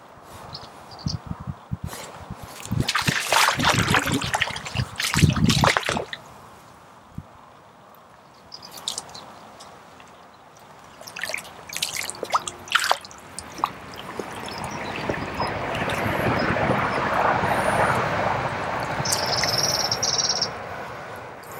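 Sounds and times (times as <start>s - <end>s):
splashing and rustling during Tenkara fishing: 2.4s - 6.5s, 8.6s - 17.0s, 18.6s - 19.8s
English chalk stream water rushing: 2.5s - 6.6s, 8.7s - 20.5s.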